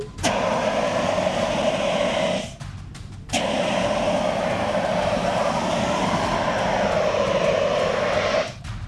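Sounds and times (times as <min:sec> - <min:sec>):
CO2 fire extinguisher spraying: 0:00.0 - 0:08.7.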